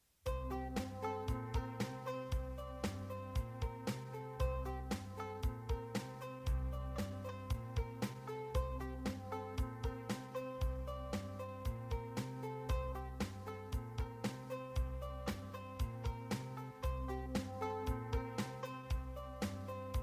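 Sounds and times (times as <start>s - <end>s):
banjos playing melody: 0.3s - 20.0s.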